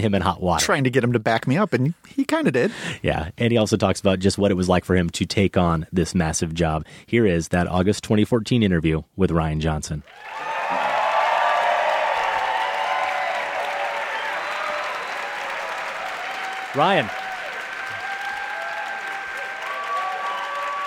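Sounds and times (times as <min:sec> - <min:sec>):
speech: 0:00.0 - 0:10.5, 0:16.7 - 0:17.2
audience applause: 0:10.0 - 0:20.8.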